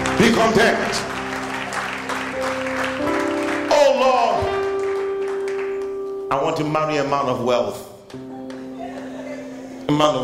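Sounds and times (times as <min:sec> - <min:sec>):
audience clapping: 0:00.0 - 0:06.1, 0:08.1 - 0:09.7
speech: 0:00.2 - 0:01.2, 0:06.3 - 0:08.3, 0:09.9 - 0:10.2.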